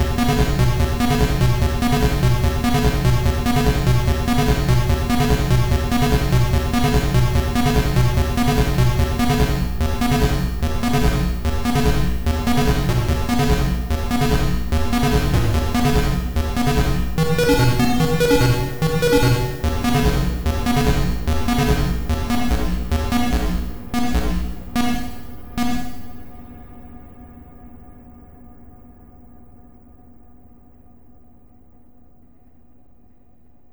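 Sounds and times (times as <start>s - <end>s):
8 step sequencer and simple synth pattern: 0.0s - 26.3s.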